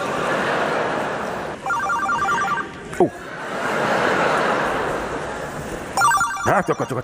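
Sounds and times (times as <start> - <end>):
laughter: 0.0 - 7.0
noise: 0.0 - 7.0
mobile phone ringtone: 1.6 - 2.7, 6.0 - 7.0
speech: 3.0 - 3.2, 6.4 - 7.0.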